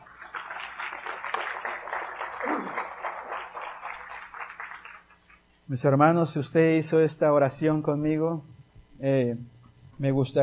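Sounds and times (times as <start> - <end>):
audience applause: 0.0 - 5.2
speech: 5.7 - 10.4.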